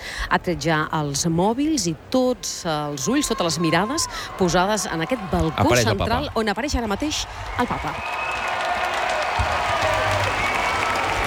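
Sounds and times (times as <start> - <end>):
speech: 0.3 - 8.2
crowd applauding and cheering in a square: 3.9 - 11.2.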